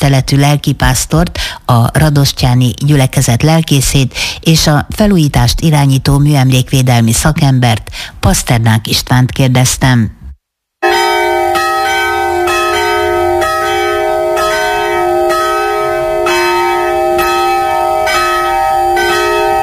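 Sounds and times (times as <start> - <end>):
speech: 0.0 - 10.2
church bells ringing at noon: 10.8 - 19.6.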